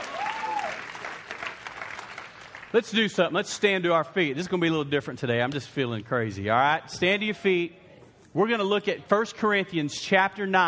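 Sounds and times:
audience clapping: 0.0 - 3.0
speech: 2.7 - 7.8, 8.4 - 10.6.

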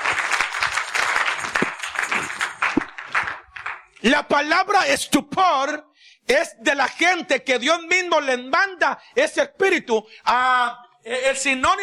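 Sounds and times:
audience clapping hands: 0.0 - 4.2
speech: 4.0 - 11.8.

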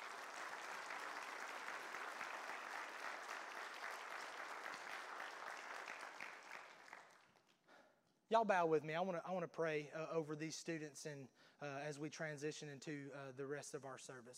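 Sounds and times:
church audience applause: 0.0 - 7.4
speech: 8.3 - 14.3.

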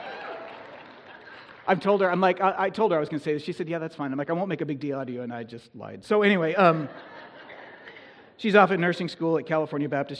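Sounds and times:
audience applause: 0.0 - 2.2
speech: 1.6 - 7.2, 8.4 - 10.1
laughter: 6.6 - 9.2.

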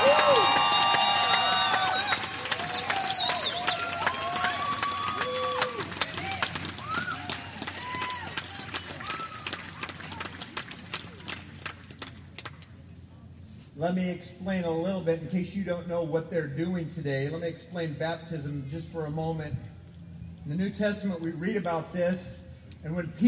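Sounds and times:
audience cheering: 0.0 - 10.7
speech: 13.8 - 19.7, 20.5 - 23.2.

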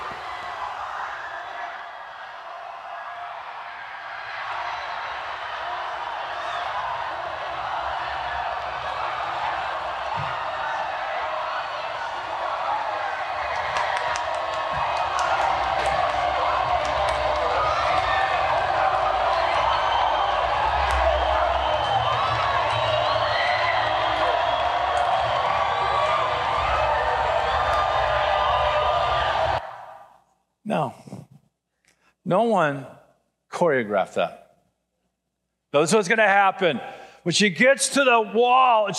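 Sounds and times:
scattered sharp claps and shouts: 0.0 - 29.8
crowd cheering: 0.0 - 30.2
speech: 32.3 - 32.9, 33.6 - 34.4, 35.8 - 38.9.

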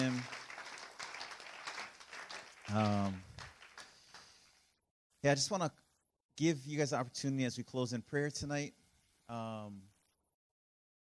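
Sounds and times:
audience clapping: 0.0 - 4.6
speech: 2.7 - 3.3, 5.2 - 5.8, 6.4 - 9.9.

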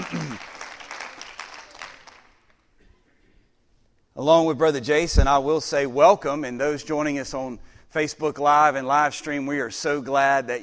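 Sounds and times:
crowd clapping hands: 0.0 - 2.7
speech: 4.2 - 10.6.

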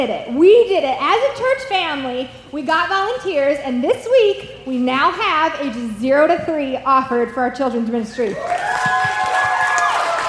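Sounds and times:
speech: 0.0 - 9.1
audience applauding: 8.4 - 10.2.

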